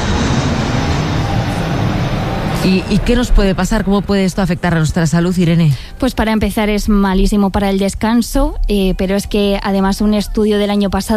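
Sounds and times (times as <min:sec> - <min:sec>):
aircraft noise at Madrid-Barajas airport: 0:00.0 - 0:07.0
speech: 0:02.6 - 0:11.1.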